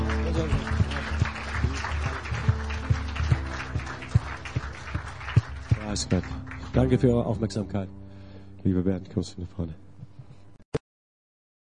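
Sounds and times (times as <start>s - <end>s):
audience applause: 0.0s - 6.8s
speech: 6.0s - 8.0s, 8.6s - 9.8s.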